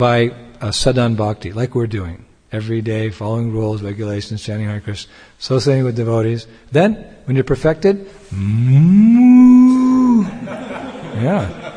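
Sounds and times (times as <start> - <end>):
speech: 0.0 - 9.6, 10.2 - 11.6
cow mooing: 8.4 - 10.3
laughter: 9.4 - 11.7.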